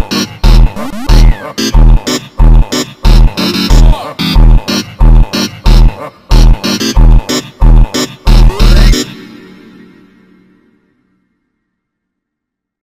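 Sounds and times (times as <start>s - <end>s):
super slowed rhythmic montagem beat: 0.0s - 9.9s.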